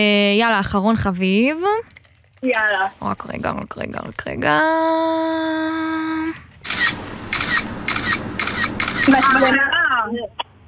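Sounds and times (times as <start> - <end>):
speech: 0.0 - 7.0, 9.0 - 10.4
screenshot camera shutter clicks: 6.6 - 9.6
steady electronic tone: 6.6 - 9.6.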